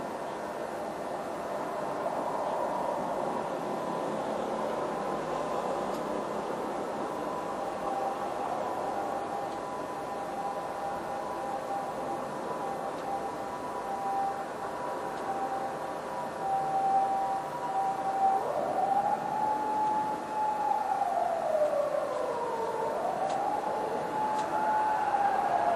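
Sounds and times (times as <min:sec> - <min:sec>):
toilet siren: 0:00.0 - 0:25.7.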